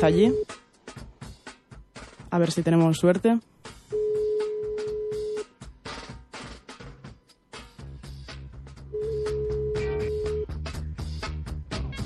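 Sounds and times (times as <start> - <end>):
telephone ringing tones while calling: 0.0 - 0.5, 3.9 - 5.5, 8.9 - 10.5
speech: 0.0 - 0.6, 2.3 - 4.0.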